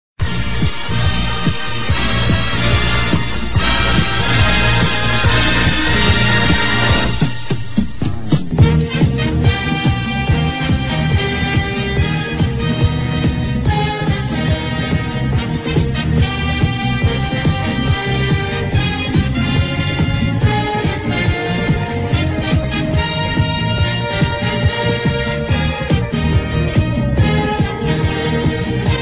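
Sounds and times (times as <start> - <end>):
fanfare: 0.2 - 29.0.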